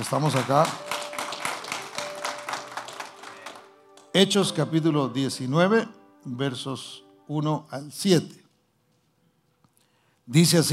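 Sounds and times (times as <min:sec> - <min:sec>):
speech: 0:00.0 - 0:00.9, 0:04.2 - 0:08.4, 0:10.3 - 0:10.7
crowd applauding: 0:00.0 - 0:04.1.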